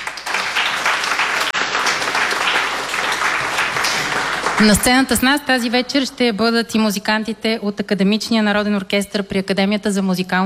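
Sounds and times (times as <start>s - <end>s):
audience applause: 0.0s - 5.1s
speech: 4.6s - 10.4s.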